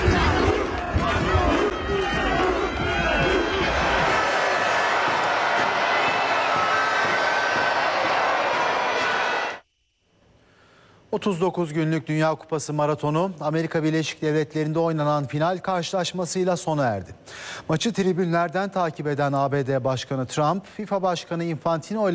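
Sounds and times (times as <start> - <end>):
crowd in Madrid chanting and shouting celebrating Spain's World Cup victory: 0.0 - 9.6
speech: 11.2 - 22.1.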